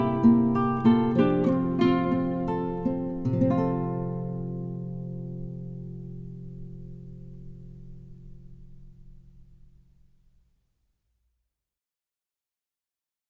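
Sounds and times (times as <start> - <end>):
guitar playing: 0.0 - 9.8.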